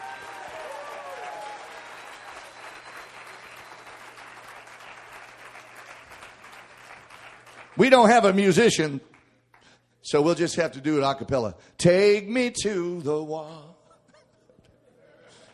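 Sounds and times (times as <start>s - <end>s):
audience clapping hands: 0.0s - 9.8s
speech: 7.8s - 9.2s, 10.1s - 13.7s.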